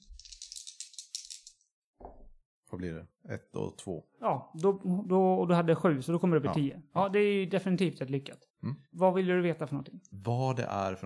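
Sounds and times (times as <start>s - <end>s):
two dice rattling on a hard surface: 0.0s - 1.7s
speech: 2.8s - 11.0s.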